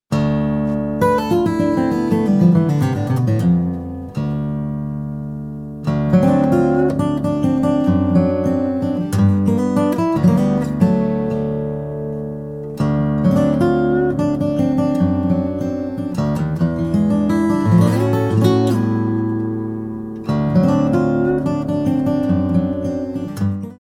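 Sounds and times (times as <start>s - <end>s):
blues music: 0.1s - 23.7s.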